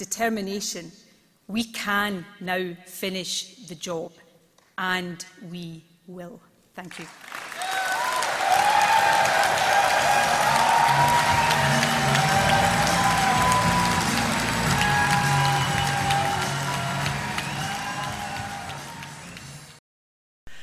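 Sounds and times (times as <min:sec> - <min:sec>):
speech: 0:00.0 - 0:04.2, 0:04.8 - 0:07.3
audience applause after a speech: 0:07.1 - 0:19.8.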